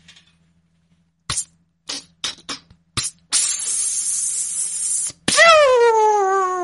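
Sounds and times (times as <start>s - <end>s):
voice imitating a whistling rocket firecracker: 1.3s - 6.6s.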